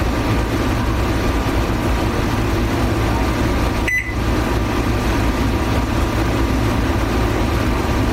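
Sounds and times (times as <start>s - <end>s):
low mechanical hum: 0.0s - 8.1s
short high electronic beep from a barcode scanning device: 3.9s - 4.2s.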